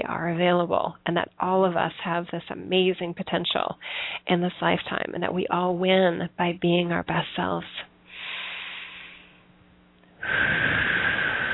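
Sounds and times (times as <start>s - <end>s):
speech: 0.0s - 7.9s, 10.2s - 10.7s
deep breath during a guided meditation: 3.8s - 4.2s, 8.1s - 9.4s, 10.2s - 11.5s.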